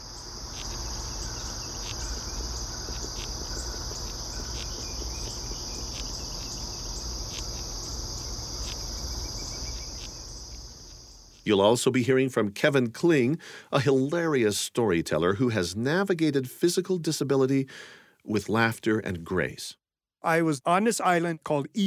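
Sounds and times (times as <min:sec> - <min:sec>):
cerambycid beetle larva chewing wood under bark: 0:00.0 - 0:11.5
speech: 0:11.5 - 0:21.8.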